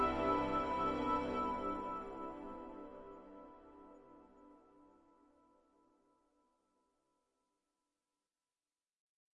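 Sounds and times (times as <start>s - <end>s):
ambient music: 0.0s - 5.4s.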